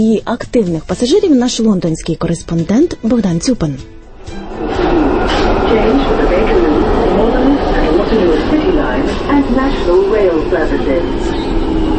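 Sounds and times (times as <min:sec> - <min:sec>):
speech: 0:00.0 - 0:11.9
London Underground subway train: 0:04.1 - 0:11.9.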